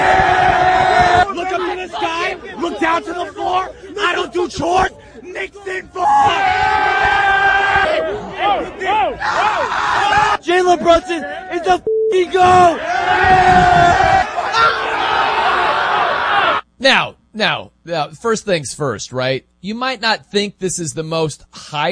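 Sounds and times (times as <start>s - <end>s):
sports fans cheering and chanting wildly: 0.0s - 11.6s, 12.3s - 16.6s
speech: 10.7s - 14.8s, 16.8s - 21.9s.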